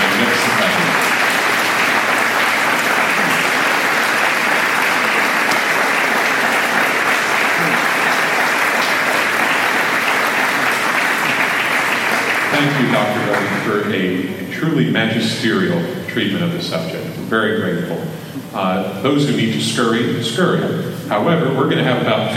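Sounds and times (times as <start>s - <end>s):
audience applause: 0.0s - 13.7s
speech: 13.7s - 22.3s.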